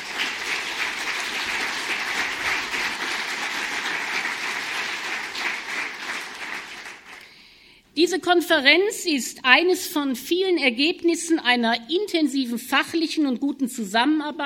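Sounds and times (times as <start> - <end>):
large conference audience applauding: 0.0 - 7.2
speech: 8.0 - 14.4.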